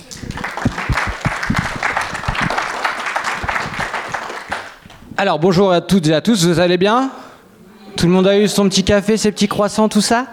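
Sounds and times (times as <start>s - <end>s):
audience applause: 0.0s - 4.9s
speech: 5.2s - 7.2s, 8.0s - 10.3s.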